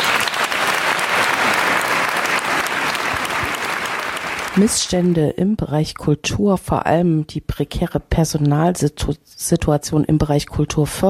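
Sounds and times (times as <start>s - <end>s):
audience applause: 0.0s - 5.2s
speech: 4.6s - 11.0s.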